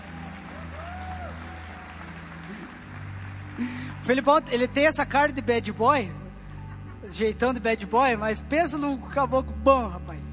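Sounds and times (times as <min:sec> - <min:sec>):
audience applause: 0:00.0 - 0:04.3
speech: 0:03.6 - 0:06.2, 0:07.0 - 0:10.1.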